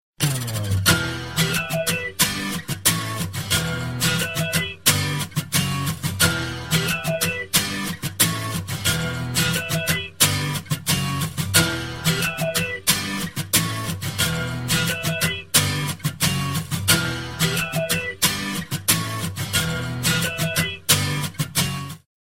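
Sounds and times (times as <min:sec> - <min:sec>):
guitar: 0:00.2 - 0:22.1.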